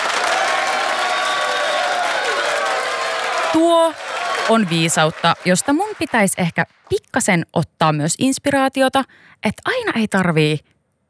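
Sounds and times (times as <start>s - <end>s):
applause: 0.0s - 6.9s
speech: 3.5s - 10.7s.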